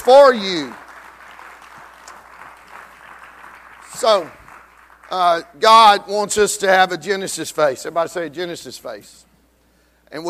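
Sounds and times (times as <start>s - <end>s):
audience clapping hands: 0.0s - 5.6s
speech: 0.1s - 0.8s, 4.0s - 4.4s, 5.1s - 9.3s.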